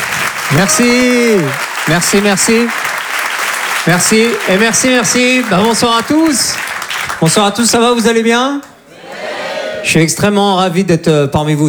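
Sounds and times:
audience applause: 0.0 - 7.7
speech: 0.5 - 2.9, 3.8 - 8.7, 9.8 - 11.6.

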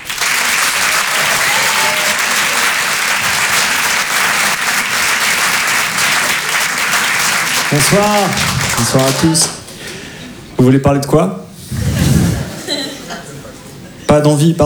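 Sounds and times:
comedy club audience applauding a comedian: 0.0 - 10.2
laughter: 5.9 - 10.6, 11.7 - 14.2
speech: 7.7 - 9.6, 10.6 - 11.4, 14.2 - 14.6.

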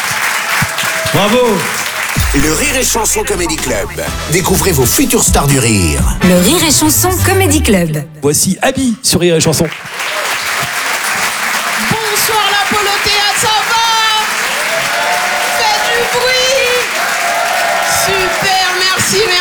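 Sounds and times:
high whoops and cheers: 0.0 - 2.2, 10.0 - 10.8, 13.0 - 19.3
audience applause: 0.0 - 4.0, 9.5 - 19.3
speech: 1.2 - 10.2.

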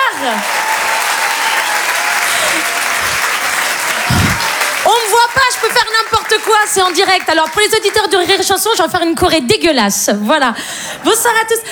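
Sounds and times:
audience applause: 0.0 - 8.6
speech: 0.2 - 0.6, 5.6 - 11.7.

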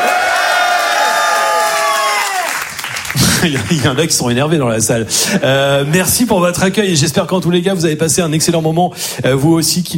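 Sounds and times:
audience cheering and applauding at the Grand Point Virgule comedy hall: 0.0 - 3.9
speech: 3.4 - 9.9.

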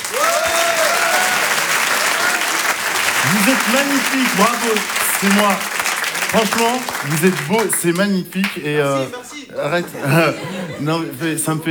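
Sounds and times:
audience applauding loudly: 0.0 - 11.6
laughter: 0.0 - 11.6
speech: 3.2 - 5.7, 6.3 - 11.6.

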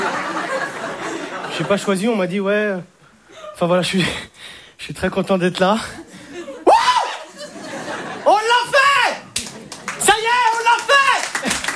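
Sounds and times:
audience laughing: 0.0 - 2.0, 5.8 - 10.1
speech: 1.6 - 3.0, 3.6 - 6.0
audience cheering: 6.6 - 11.7
audience clapping: 9.3 - 11.7.

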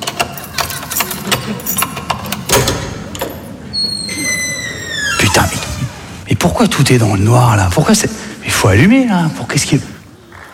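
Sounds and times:
keys unlocking a door: 0.0 - 6.2
door opening: 0.0 - 6.9
speech: 6.6 - 9.9.

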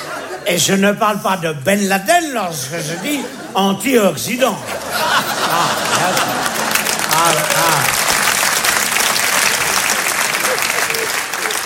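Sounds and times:
laughter: 0.0 - 0.9, 2.5 - 11.6
speech: 0.4 - 6.6, 7.2 - 8.0
audience applause during a French-language lecture: 4.8 - 11.6.

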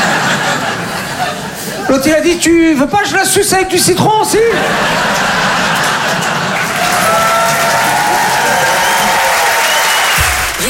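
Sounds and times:
laughter: 0.0 - 2.0, 4.4 - 9.4
crowd noise: 0.0 - 3.2, 4.0 - 10.6
speech: 1.9 - 5.8
audience applause: 4.6 - 10.6.

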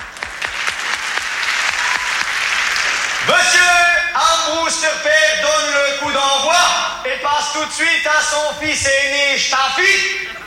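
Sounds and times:
audience applauding: 0.0 - 3.6
speech: 3.3 - 3.9, 4.7 - 10.4.

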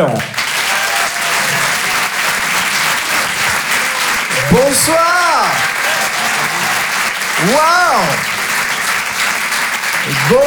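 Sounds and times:
speech: 0.0 - 0.4, 4.5 - 6.8, 7.4 - 8.3, 10.1 - 10.4
audience applause at a live comedy club show in a Paris theatre: 0.0 - 10.4
laughter: 0.6 - 10.4.

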